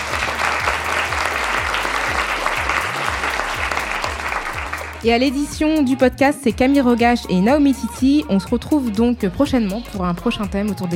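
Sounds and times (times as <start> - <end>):
audience applause: 0.0 - 5.0
speech: 5.0 - 10.9.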